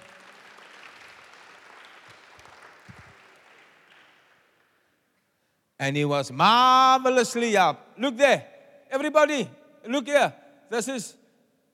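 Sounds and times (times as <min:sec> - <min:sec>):
audience applause: 0:00.0 - 0:04.8
speech: 0:05.8 - 0:11.2.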